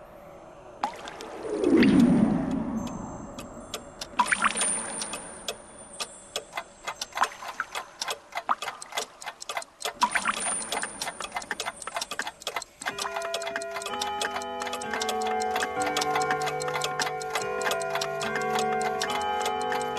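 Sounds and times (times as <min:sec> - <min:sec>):
clock ticking: 0:01.6 - 0:19.9.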